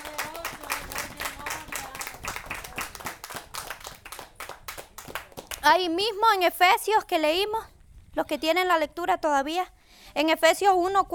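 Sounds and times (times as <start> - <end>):
audience clapping: 0.0 - 5.7
speech: 5.6 - 11.1.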